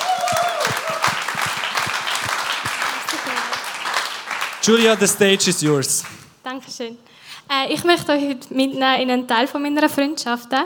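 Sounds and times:
audience applause: 0.0s - 6.2s
speech: 4.7s - 10.6s.

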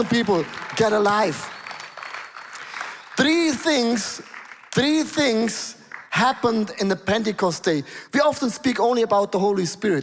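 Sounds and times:
speech: 0.0s - 1.6s, 3.2s - 10.0s
audience applause: 0.0s - 6.6s.

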